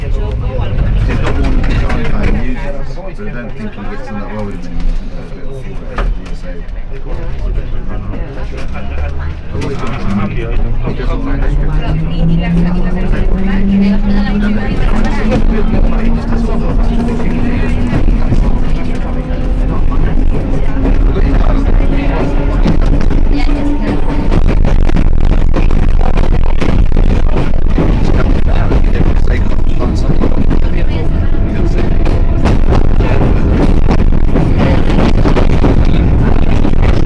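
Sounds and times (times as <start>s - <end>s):
London Underground train: 0.0s - 37.0s.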